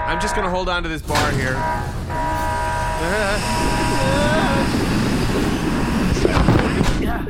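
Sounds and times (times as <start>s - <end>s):
speech: 0.1s - 2.3s, 3.0s - 5.6s
sharp crackling bursts: 1.0s - 7.2s
warbling electronic whine: 2.1s - 6.9s.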